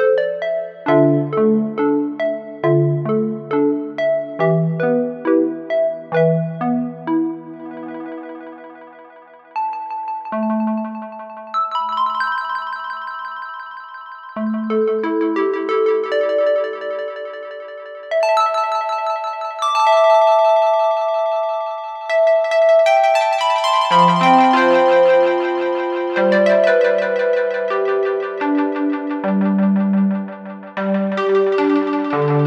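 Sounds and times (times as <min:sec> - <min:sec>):
analog synthesizer: 0:00.0 - 0:13.6, 0:14.3 - 0:32.4.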